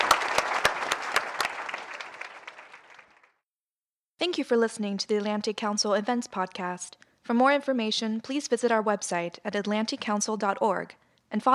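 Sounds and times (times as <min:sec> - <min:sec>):
audience applause for panelists: 0:00.0 - 0:03.4
speech: 0:04.2 - 0:11.5.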